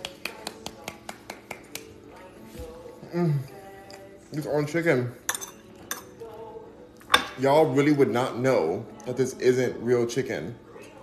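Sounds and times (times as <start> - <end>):
hand clapping: 0.0 - 2.0
speech: 3.1 - 3.6, 4.3 - 5.2, 7.4 - 10.6.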